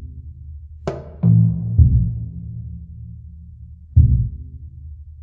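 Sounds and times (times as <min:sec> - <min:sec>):
jungle level music: 0:00.9 - 0:04.6.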